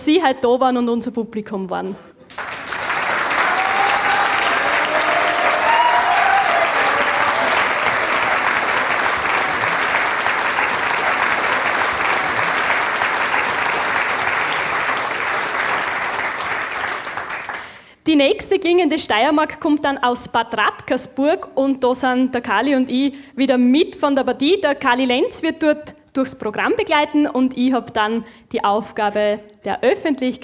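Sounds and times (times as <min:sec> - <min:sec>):
speech: 0:00.0 - 0:02.1, 0:18.6 - 0:30.4
audience applause: 0:02.3 - 0:17.8.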